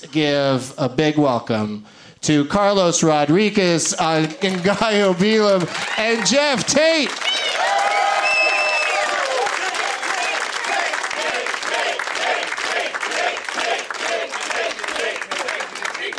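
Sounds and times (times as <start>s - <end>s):
speech: 0.0s - 7.3s
crowd applauding and cheering: 3.4s - 16.1s
crowd chanting a single short word: 9.9s - 16.1s.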